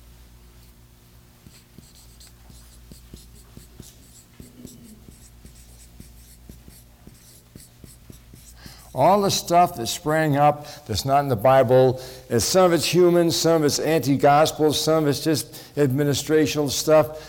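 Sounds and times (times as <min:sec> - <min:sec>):
low steady hum: 0:00.0 - 0:17.2
writing by hand with a pen: 0:01.4 - 0:09.5
speech: 0:09.0 - 0:17.2.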